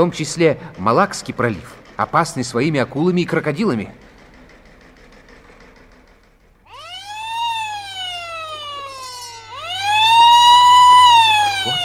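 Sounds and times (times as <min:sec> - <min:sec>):
speech: 0:00.0 - 0:04.0
wailing alarm siren: 0:06.7 - 0:11.8.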